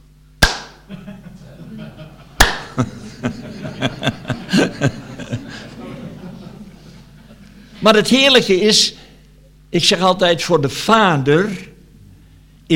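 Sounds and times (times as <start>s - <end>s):
hand clapping: 0.4s - 0.8s, 2.4s - 2.9s
laughter: 0.9s - 7.8s
speech: 2.8s - 3.0s, 4.8s - 5.0s, 7.8s - 9.0s, 9.7s - 11.7s.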